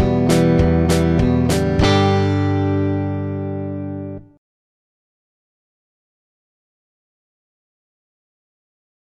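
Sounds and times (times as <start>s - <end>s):
rhythm guitar: 0.0s - 4.4s.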